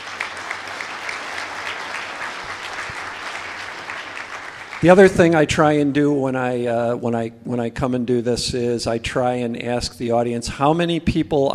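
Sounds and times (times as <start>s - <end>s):
crowd applause: 0.0s - 5.4s
speech: 4.8s - 11.5s.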